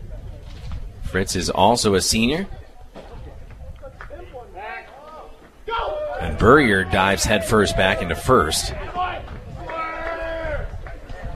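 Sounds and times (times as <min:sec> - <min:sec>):
speech: 0:01.1 - 0:02.6, 0:06.4 - 0:09.0
baseball dugout players cheering: 0:04.0 - 0:11.3.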